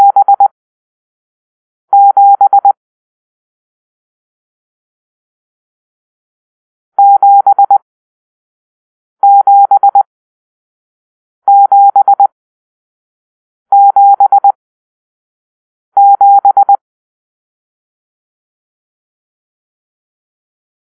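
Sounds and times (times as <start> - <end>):
morse code for numeral seven: 0.0 - 0.5, 1.9 - 2.8, 7.0 - 7.8, 9.2 - 10.0, 11.5 - 12.3, 13.7 - 14.5, 16.0 - 16.8.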